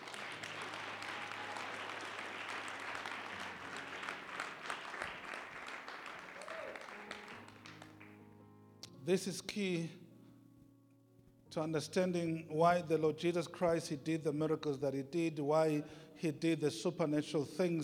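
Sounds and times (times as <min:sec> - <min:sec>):
audience clapping hands: 0:00.0 - 0:08.2
speech: 0:09.0 - 0:10.0, 0:11.6 - 0:17.8.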